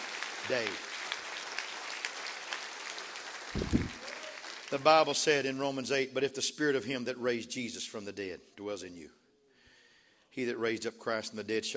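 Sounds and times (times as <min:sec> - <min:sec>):
audience clapping hands: 0:00.0 - 0:05.5
speech: 0:00.5 - 0:00.9, 0:04.7 - 0:09.2, 0:10.4 - 0:11.7.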